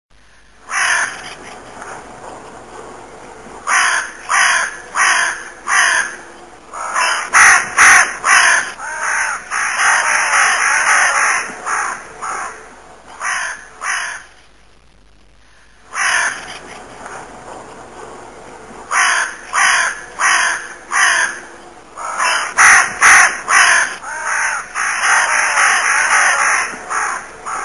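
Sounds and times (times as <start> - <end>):
crow ring: 0.7 - 1.4, 3.7 - 14.4, 15.9 - 16.6, 18.9 - 27.6.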